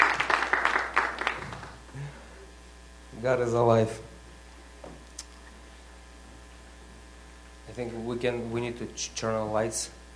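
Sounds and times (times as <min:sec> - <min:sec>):
audience hand clapping: 0:00.0 - 0:01.9
speech: 0:03.2 - 0:04.1, 0:07.8 - 0:10.0.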